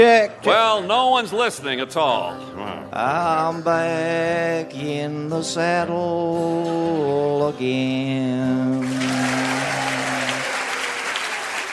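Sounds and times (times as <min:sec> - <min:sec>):
speech: 0:00.0 - 0:10.0
bar crowd applauding: 0:08.8 - 0:11.7.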